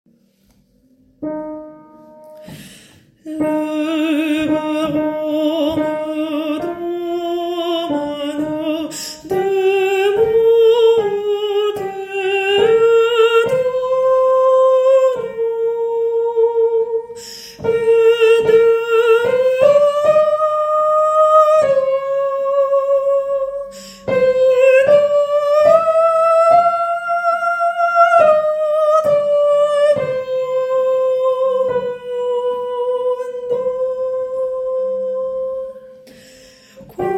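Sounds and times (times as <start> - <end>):
soprano singing: 1.2 - 37.1.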